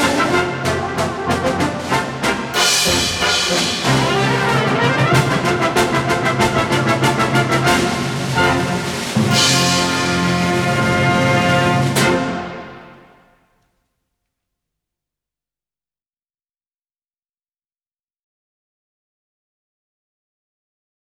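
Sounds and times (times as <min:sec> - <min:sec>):
polka music: 0:00.0 - 0:13.2.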